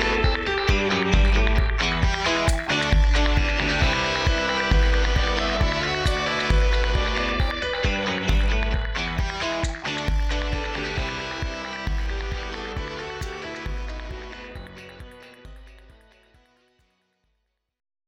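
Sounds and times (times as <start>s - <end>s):
guitar: 0.0s - 16.6s.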